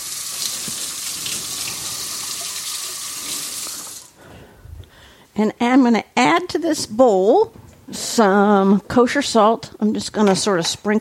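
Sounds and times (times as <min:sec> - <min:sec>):
tap water running while washing oil off hands: 0:00.0 - 0:04.2
speech: 0:05.4 - 0:11.0.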